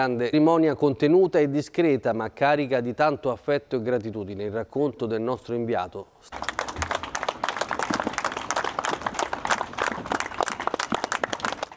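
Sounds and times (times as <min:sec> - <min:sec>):
speech: 0:00.0 - 0:06.9
long applause from villagers: 0:06.3 - 0:11.7.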